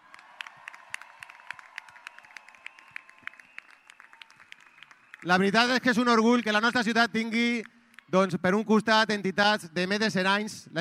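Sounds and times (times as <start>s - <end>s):
audience applause: 0.0s - 6.8s
speech: 5.2s - 10.7s.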